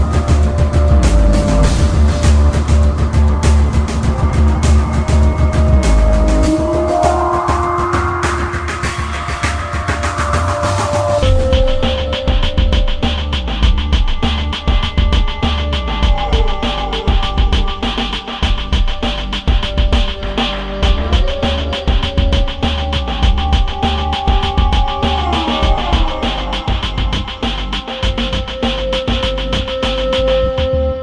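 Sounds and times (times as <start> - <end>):
theatre music: 0.0 - 30.9.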